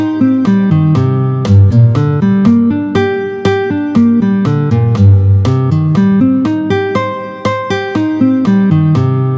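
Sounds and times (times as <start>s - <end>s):
fast G minor and C minor arpeggios played with a pick: 0.0s - 9.3s.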